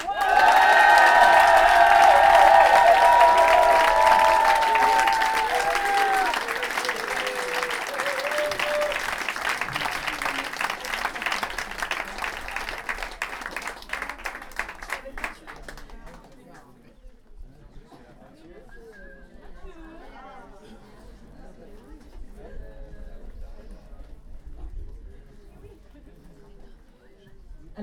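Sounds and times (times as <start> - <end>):
cheering voices: 0.0 - 14.9
crowd applauding: 0.0 - 16.3.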